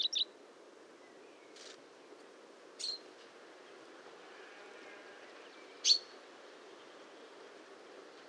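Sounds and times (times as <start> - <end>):
common chaffinch Fringilla coelebs singing: 0.0 - 0.3, 2.8 - 3.1, 5.5 - 6.2.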